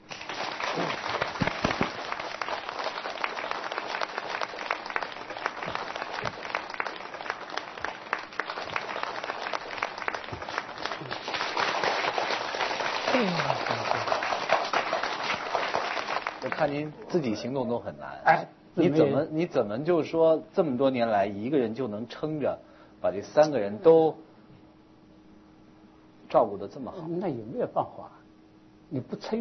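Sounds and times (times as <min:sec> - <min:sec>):
audience applause: 0:00.0 - 0:16.7
speech: 0:16.7 - 0:24.2, 0:26.3 - 0:28.2, 0:28.9 - 0:29.3.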